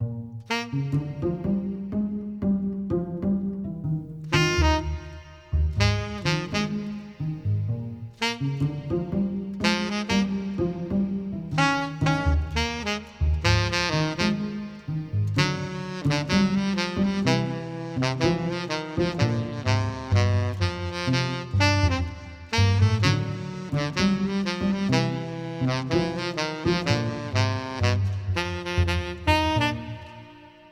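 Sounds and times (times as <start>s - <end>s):
blues music: 0.0s - 30.7s.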